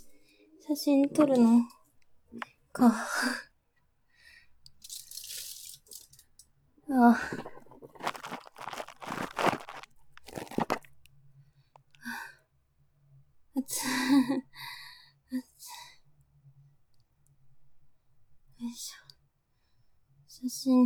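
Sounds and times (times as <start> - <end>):
speech: 0.7 - 3.5, 6.9 - 8.2, 13.7 - 14.7, 20.6 - 20.8
aluminium foil being crumpled and crinkled: 7.3 - 11.0.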